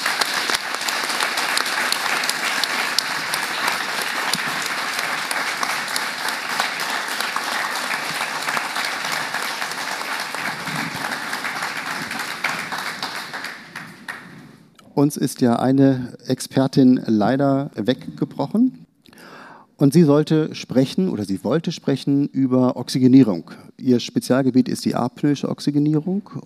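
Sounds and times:
large audience applause: 0.0s - 14.5s
speech: 15.0s - 18.8s, 19.8s - 26.4s.

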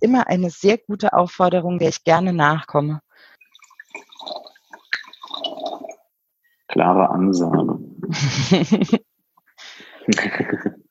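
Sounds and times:
speech: 0.0s - 3.0s, 6.7s - 9.0s, 10.1s - 10.8s
wine pouring into a glass: 3.3s - 6.0s.

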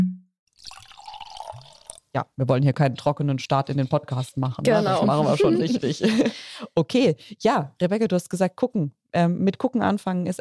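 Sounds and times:
wine being poured into glasses: 0.5s - 2.1s
speech: 2.1s - 10.3s
laughter: 4.7s - 6.7s.

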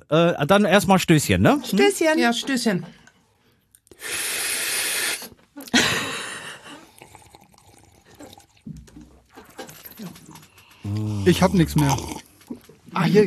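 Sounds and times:
speech: 0.1s - 3.0s, 4.0s - 4.3s, 10.9s - 12.2s, 13.0s - 13.2s
person slurping: 3.9s - 8.7s, 10.2s - 12.6s.

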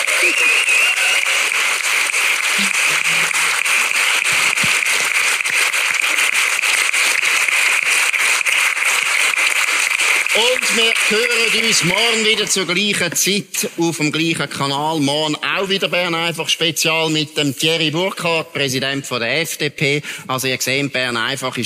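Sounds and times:
audience applause: 0.0s - 13.0s
speech: 10.6s - 21.6s.

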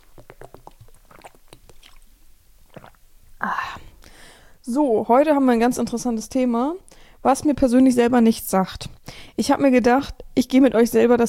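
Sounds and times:
person taking a sip of water: 0.0s - 4.2s
speech: 4.7s - 11.2s.

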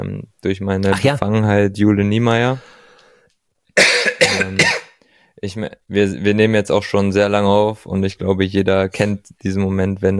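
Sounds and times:
speech: 0.0s - 2.8s, 5.4s - 10.1s
coughing: 3.8s - 5.0s.

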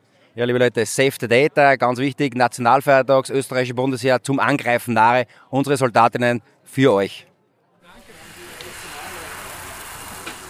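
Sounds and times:
speech: 0.4s - 7.3s
pancakes sizzling while frying: 7.9s - 10.4s.

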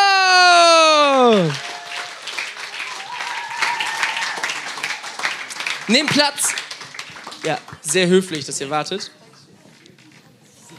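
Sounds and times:
audience applause: 0.4s - 9.0s
speech: 1.3s - 1.6s, 5.9s - 6.7s, 7.4s - 9.2s.

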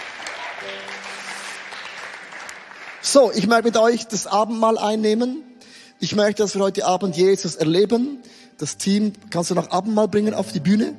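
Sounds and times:
audience applause: 0.0s - 3.4s
speech: 0.6s - 1.0s, 3.0s - 10.9s.

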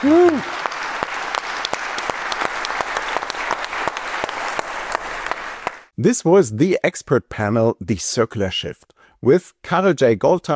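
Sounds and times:
speech: 0.0s - 0.6s, 6.0s - 10.5s
audience applause: 0.0s - 5.9s.

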